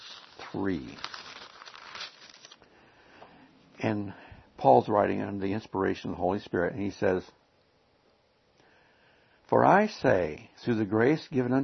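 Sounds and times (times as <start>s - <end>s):
Bible pages being turned: 0.0s - 2.6s
speech: 0.5s - 1.1s, 3.8s - 7.4s, 9.6s - 11.6s.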